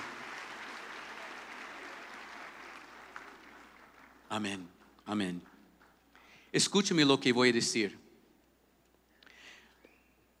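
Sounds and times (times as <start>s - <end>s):
audience applause: 0.0s - 4.6s
speech: 4.3s - 5.5s, 6.5s - 8.0s.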